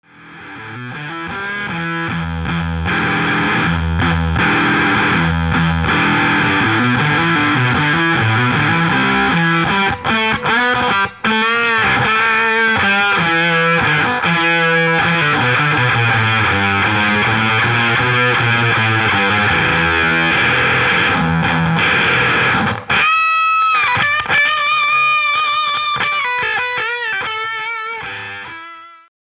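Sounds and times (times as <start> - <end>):
Foxx Tone Machine fuzz tone: 0.0 - 29.0.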